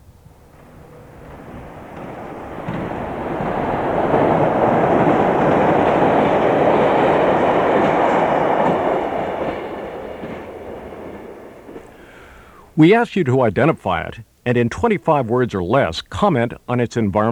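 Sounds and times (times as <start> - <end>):
subway train rumbling past: 0.0 - 13.0
speech: 12.8 - 17.3.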